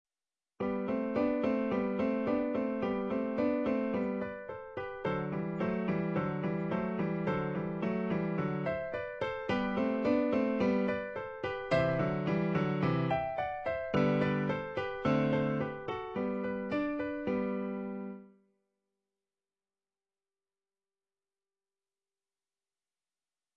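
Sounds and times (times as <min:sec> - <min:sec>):
andante piano piece: 0:00.6 - 0:18.4.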